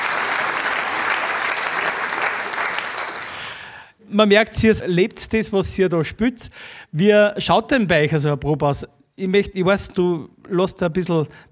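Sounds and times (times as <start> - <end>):
audience applause: 0.0 - 3.7
speech: 4.1 - 11.5.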